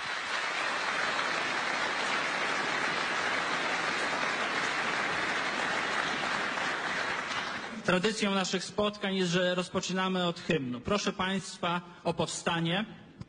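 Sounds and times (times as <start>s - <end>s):
audience applause: 0.0s - 7.8s
speech: 7.9s - 13.0s.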